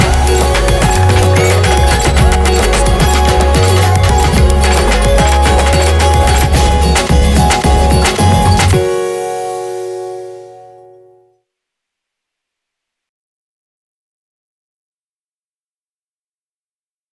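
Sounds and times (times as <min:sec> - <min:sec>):
kick drum pop: 0:00.0 - 0:08.8.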